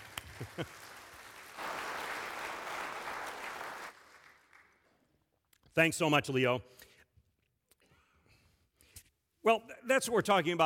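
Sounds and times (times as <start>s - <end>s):
audience clapping: 0.0s - 5.2s
speech: 0.4s - 0.8s, 5.8s - 6.9s, 9.5s - 10.6s.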